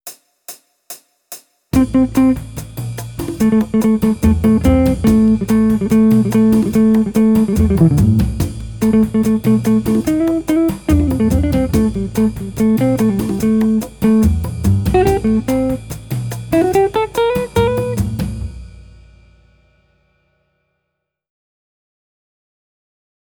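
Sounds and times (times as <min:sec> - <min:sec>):
jazz guitar: 0:01.8 - 0:18.5.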